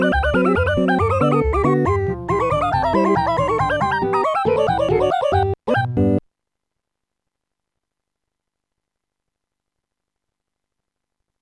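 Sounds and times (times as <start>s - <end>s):
ragtime tune: 0.0s - 6.2s.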